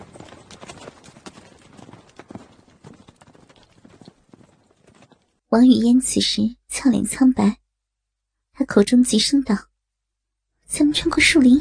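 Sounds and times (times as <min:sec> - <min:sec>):
horses galloping: 0:00.0 - 0:05.4
speech: 0:05.5 - 0:07.6, 0:08.6 - 0:09.7, 0:10.7 - 0:11.6.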